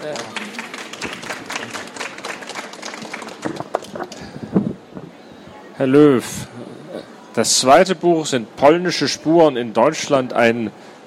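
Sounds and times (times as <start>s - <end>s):
audience clapping: 0.0s - 4.2s
speech: 5.8s - 6.5s, 7.4s - 10.9s.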